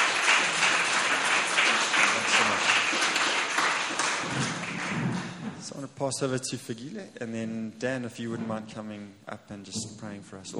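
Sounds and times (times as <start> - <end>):
audience round of applause: 0.0 - 5.6
speech: 6.0 - 10.5.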